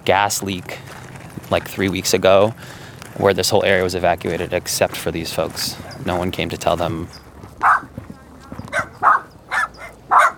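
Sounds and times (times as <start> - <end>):
speech: 0.0 - 7.2
small dogs yapping and barking: 5.8 - 6.2, 7.6 - 8.0, 8.6 - 10.3.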